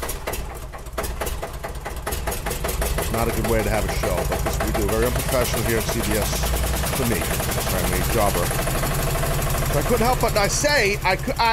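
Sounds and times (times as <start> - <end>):
several electric fans running: 0.0 - 11.5
speech: 3.1 - 9.1, 9.8 - 11.5.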